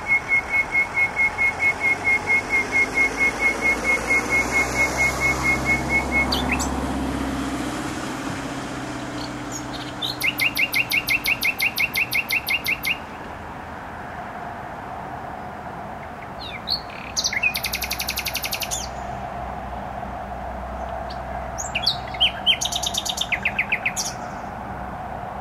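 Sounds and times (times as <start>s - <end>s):
nightingale singing: 0.0s - 7.2s, 9.1s - 13.4s, 16.0s - 19.1s, 20.7s - 24.6s
motorway road traffic hum: 0.0s - 25.3s.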